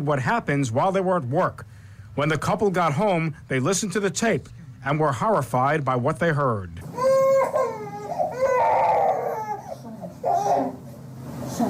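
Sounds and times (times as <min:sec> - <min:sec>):
speech: 0:00.0 - 0:06.9
infant crying in pain: 0:06.9 - 0:10.8.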